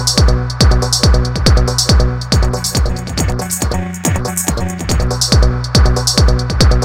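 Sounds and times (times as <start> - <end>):
music beat: 0.0 - 6.8.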